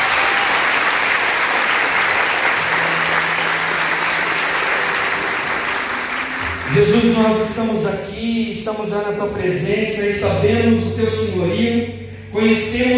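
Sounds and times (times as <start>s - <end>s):
audience applauding: 0.0s - 7.5s
speech: 6.7s - 12.9s.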